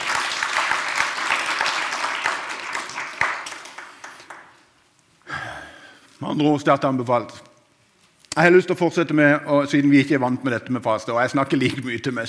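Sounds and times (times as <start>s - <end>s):
audience applause: 0.0s - 4.6s
speech: 6.2s - 7.5s, 8.4s - 12.2s.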